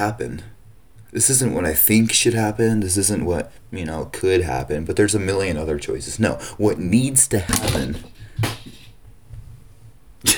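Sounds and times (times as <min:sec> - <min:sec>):
speech: 0:00.0 - 0:08.5
sunglasses knocked over on a desk: 0:07.5 - 0:09.0.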